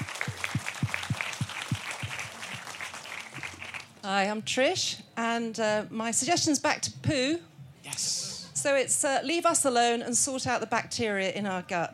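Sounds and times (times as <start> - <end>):
audience applause: 0.0 - 4.0
speech: 4.0 - 11.9.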